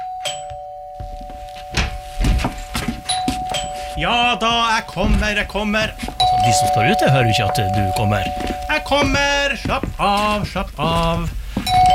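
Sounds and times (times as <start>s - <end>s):
doorbell ringing: 0.0s - 9.2s, 11.7s - 11.9s
speech: 4.0s - 11.4s.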